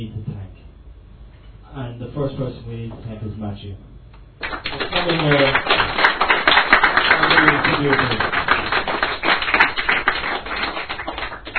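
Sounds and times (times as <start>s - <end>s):
speech: 1.8s - 3.9s, 4.7s - 5.8s, 7.6s - 8.4s
audience clapping: 4.4s - 11.5s.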